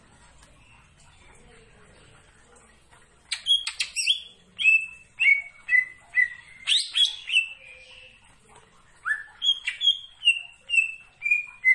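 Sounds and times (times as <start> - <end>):
leafbird singing vigorously: 3.3 - 8.2, 9.0 - 11.7.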